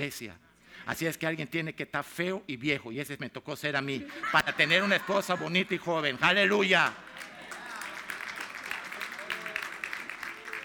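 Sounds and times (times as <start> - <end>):
speech: 0.0 - 7.3
laughter: 4.0 - 9.5
audience applause: 6.4 - 10.6.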